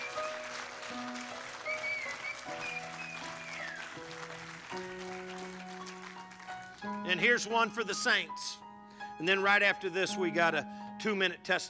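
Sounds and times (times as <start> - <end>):
high whistles: 0.0 - 0.6, 1.6 - 4.0
church audience applause: 0.0 - 7.0
keyboard or organ chords: 0.0 - 11.6
speech: 7.1 - 8.6, 9.2 - 11.6.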